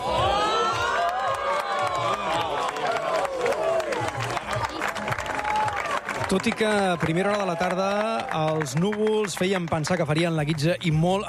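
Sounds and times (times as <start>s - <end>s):
high whoops: 0.0s - 4.0s
crowd cheering at a solar eclipse at the Ebre Observatory: 0.0s - 9.5s
speech: 6.3s - 11.2s.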